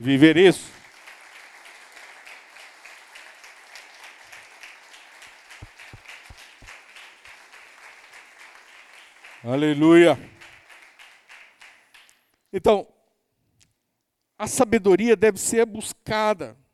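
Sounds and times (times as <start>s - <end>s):
speech: 0.0s - 0.8s, 9.4s - 10.3s, 12.5s - 12.9s, 14.4s - 16.6s
crowd applauding: 0.0s - 12.3s.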